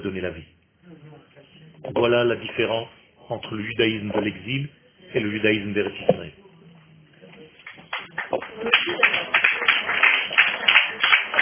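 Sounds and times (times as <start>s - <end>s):
speech: 0.0s - 1.1s, 1.8s - 6.4s
faint murmur of voices: 0.8s - 11.3s
audience applause: 7.6s - 11.3s.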